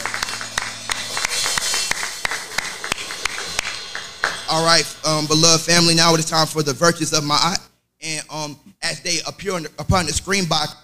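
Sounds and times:
audience hand clapping: 0:00.0 - 0:05.0
speech: 0:04.6 - 0:10.8.

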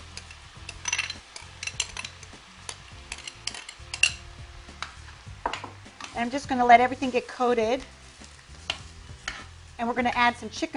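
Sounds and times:
utensil scraping and clinking against the pan: 0:00.0 - 0:05.2, 0:07.0 - 0:10.4
tomatoes sizzling in a pot: 0:00.0 - 0:10.7
speech: 0:06.2 - 0:08.0, 0:09.8 - 0:10.7.

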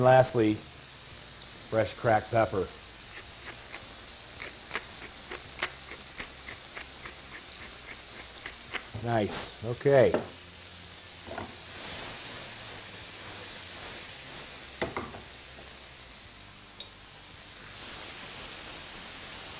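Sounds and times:
speech: 0:00.0 - 0:00.8, 0:01.7 - 0:02.8, 0:09.0 - 0:10.4
tomatoes sizzling and cooking down in a hot pan: 0:00.0 - 0:19.5
stirring clicks and pops: 0:04.4 - 0:09.0.

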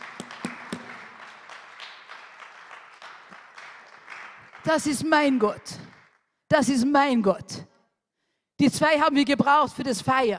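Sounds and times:
audience applause: 0:00.0 - 0:06.1
speech: 0:04.6 - 0:05.8, 0:06.5 - 0:07.7, 0:08.6 - 0:10.3.

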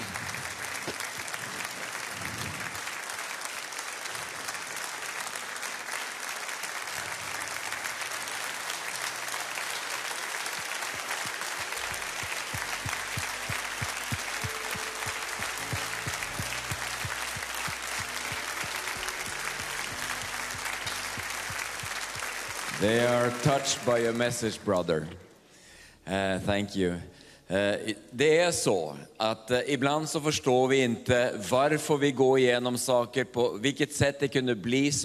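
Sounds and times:
audience applause: 0:00.0 - 0:24.4
soft low musical tones: 0:10.7 - 0:25.2
speech: 0:22.8 - 0:25.2, 0:26.1 - 0:35.0.

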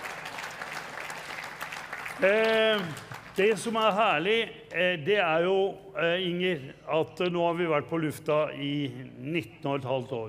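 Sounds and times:
audience clapping: 0:00.0 - 0:04.3
speech: 0:02.2 - 0:10.2.

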